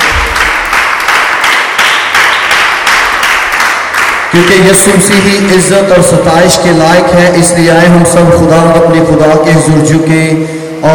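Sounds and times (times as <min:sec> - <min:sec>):
church congregation applause: 0:00.0 - 0:05.6
speech: 0:04.4 - 0:10.9.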